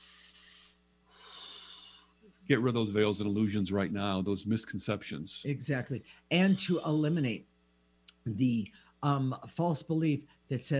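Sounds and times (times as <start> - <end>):
soft breaths in a guided breathing exercise: 0.0 - 2.5
speech: 2.5 - 7.5, 8.2 - 10.7.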